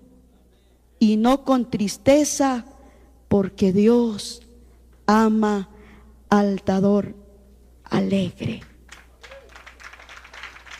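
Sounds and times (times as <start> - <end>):
faint low hum: 0.0 - 10.7
speech: 1.0 - 2.7, 3.3 - 4.4, 5.1 - 5.7, 6.3 - 7.2, 7.9 - 8.7
audience applause: 8.9 - 10.7.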